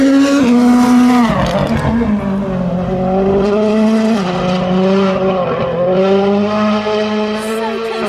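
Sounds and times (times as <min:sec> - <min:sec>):
rally car passing at speed: 0:00.0 - 0:08.0.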